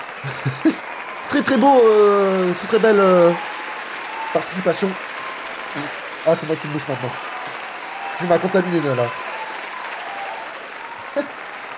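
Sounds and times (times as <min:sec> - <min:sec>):
laughter: 0:00.0 - 0:01.6, 0:10.9 - 0:11.5
applause: 0:00.0 - 0:11.7
speech: 0:00.2 - 0:00.7, 0:01.4 - 0:03.5, 0:04.3 - 0:05.1, 0:05.8 - 0:07.3, 0:08.2 - 0:09.2, 0:11.2 - 0:11.4.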